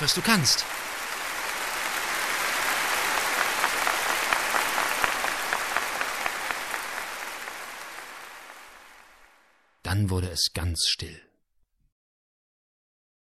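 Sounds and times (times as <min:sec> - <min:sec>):
speech: 0:00.0 - 0:00.8, 0:10.0 - 0:11.3
audience applause for a young performer: 0:00.0 - 0:09.6.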